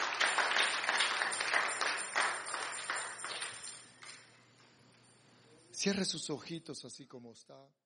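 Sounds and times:
audience applause: 0:00.0 - 0:03.8
speech: 0:05.8 - 0:07.8.

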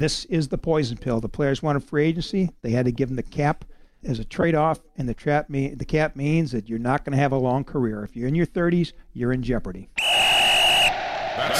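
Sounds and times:
speech: 0:00.0 - 0:10.0, 0:11.4 - 0:11.5
whistle signalling the two-minute drill: 0:10.0 - 0:11.2.

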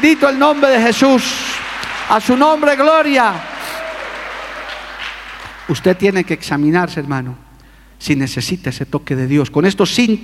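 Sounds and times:
speech: 0:00.0 - 0:03.5, 0:05.7 - 0:07.4, 0:08.0 - 0:10.2
audience applauding: 0:00.0 - 0:06.8.

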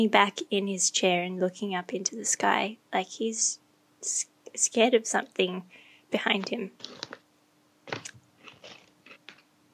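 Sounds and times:
speech: 0:00.0 - 0:07.2
crunching potato chips while eating: 0:06.8 - 0:07.2, 0:07.9 - 0:09.4.

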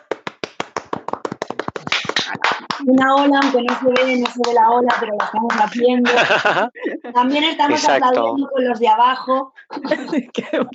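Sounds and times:
audience applause: 0:00.0 - 0:06.6
speech: 0:02.3 - 0:10.7
laughter: 0:05.5 - 0:08.3, 0:09.6 - 0:10.7.

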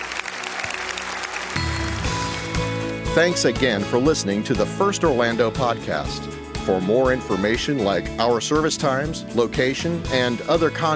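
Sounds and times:
audience clapping hands: 0:00.0 - 0:03.4
speech: 0:03.2 - 0:10.9.

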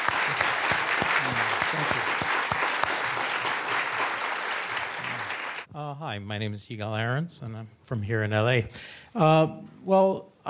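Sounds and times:
audience applause: 0:00.0 - 0:05.7
speech: 0:05.9 - 0:10.4.

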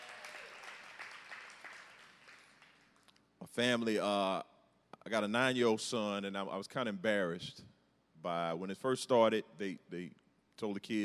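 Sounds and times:
audience round of applause: 0:00.0 - 0:02.9
speech: 0:03.6 - 0:04.5, 0:05.1 - 0:11.0.

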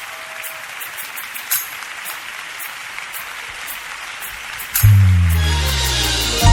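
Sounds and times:
audience applauding: 0:00.0 - 0:06.5
low sustained musical chord: 0:05.1 - 0:06.5.

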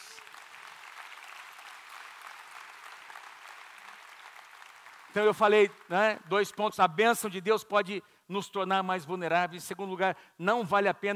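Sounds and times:
applause: 0:00.0 - 0:06.9
speech: 0:05.1 - 0:11.1.

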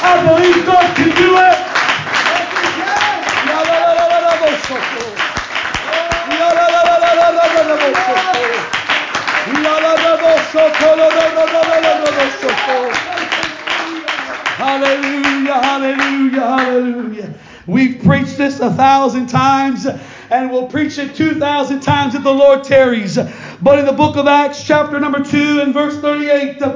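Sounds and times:
audience clapping hands: 0:00.0 - 0:17.3
speech: 0:18.6 - 0:26.7.

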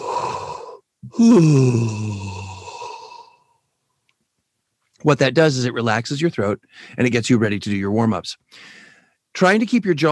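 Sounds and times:
deep inhale: 0:00.0 - 0:00.9, 0:01.5 - 0:03.6, 0:08.5 - 0:09.2
relaxed-jaw yawning sigh: 0:00.0 - 0:03.6
speech: 0:01.2 - 0:02.3, 0:05.0 - 0:10.0.

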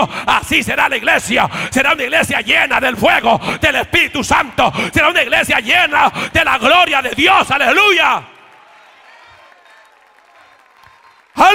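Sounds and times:
speech: 0:00.0 - 0:08.3, 0:11.4 - 0:11.5
audience clapping: 0:06.8 - 0:11.5.

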